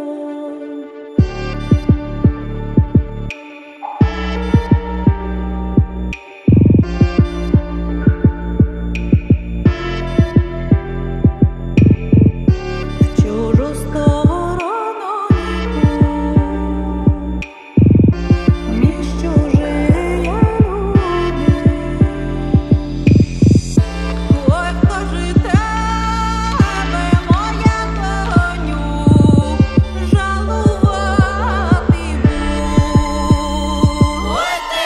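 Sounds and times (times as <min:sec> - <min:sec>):
blues music: 0:00.3 - 0:34.8.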